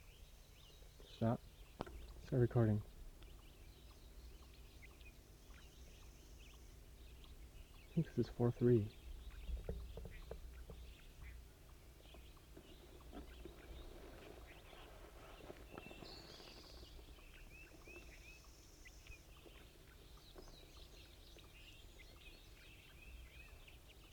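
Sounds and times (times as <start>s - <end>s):
wild crossbill calling near a net: 1.1s - 24.1s.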